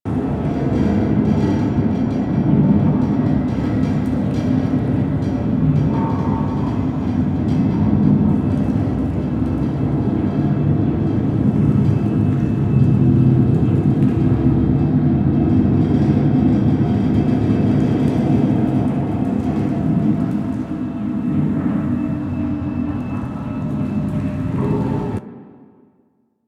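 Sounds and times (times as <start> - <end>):
large galleon ambience: 0.1 - 25.2.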